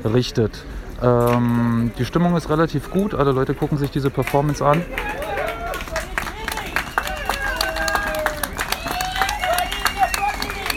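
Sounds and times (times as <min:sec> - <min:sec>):
speech: 0:00.0 - 0:05.3
clapping: 0:03.7 - 0:10.7.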